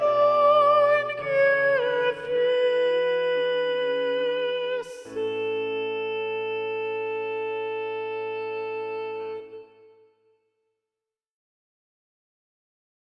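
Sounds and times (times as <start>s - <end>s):
soprano singing: 0.0s - 10.3s.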